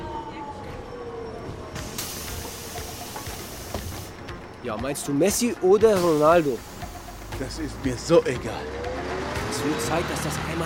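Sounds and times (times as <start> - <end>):
rumbling railway station noise in Switzerland: 0.0 - 10.6
burst of hissing air: 1.8 - 4.2, 6.0 - 7.4
speech: 4.6 - 6.7, 7.4 - 8.9, 9.6 - 10.6.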